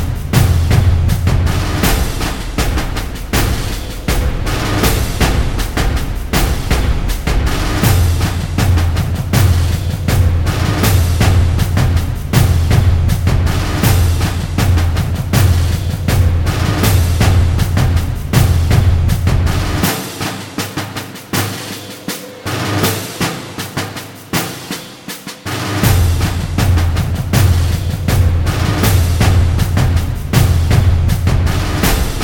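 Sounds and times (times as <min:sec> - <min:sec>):
drums: 0:00.0 - 0:32.2.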